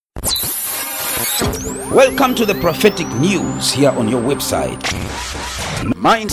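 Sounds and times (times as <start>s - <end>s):
English jingle: 1.6s - 6.2s.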